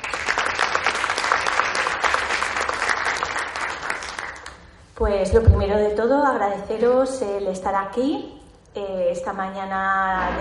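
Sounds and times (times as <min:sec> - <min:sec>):
audience applause: 0:00.0 - 0:04.6
speech: 0:05.0 - 0:10.3.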